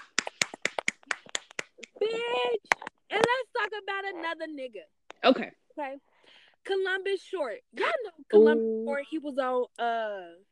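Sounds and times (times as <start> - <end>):
hand clapping: 0.0 - 3.8
speech: 4.0 - 10.5.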